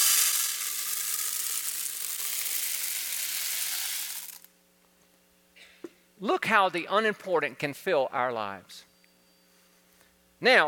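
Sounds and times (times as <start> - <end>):
pebbles poured into a container: 0.0 - 4.5
speech: 6.2 - 8.9, 10.4 - 10.6.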